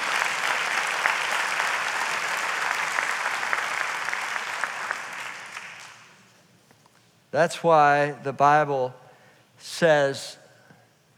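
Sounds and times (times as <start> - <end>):
audience clapping: 0.0 - 6.2
speech: 7.3 - 9.0, 9.6 - 10.4.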